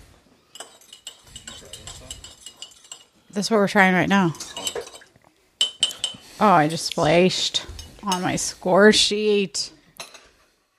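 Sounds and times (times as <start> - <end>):
metal fork clinking against a cup: 0.6 - 3.1, 4.4 - 6.2
speech: 3.4 - 4.5, 6.4 - 9.8.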